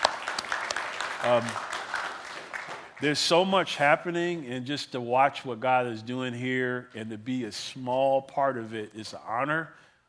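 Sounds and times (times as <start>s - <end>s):
audience in a church clapping for the congregation: 0.0s - 3.5s
speech: 1.2s - 1.7s, 3.0s - 9.8s.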